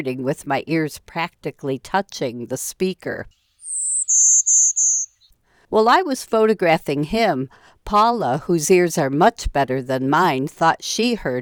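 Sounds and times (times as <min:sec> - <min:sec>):
speech: 0:00.0 - 0:03.4, 0:04.1 - 0:04.6, 0:05.7 - 0:11.4
golden-winged warbler song: 0:03.3 - 0:05.3.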